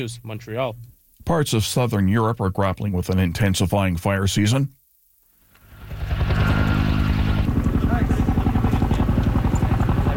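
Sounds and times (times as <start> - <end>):
speech: 0.0 - 4.8
helicopter flying over wildfire: 5.6 - 10.1.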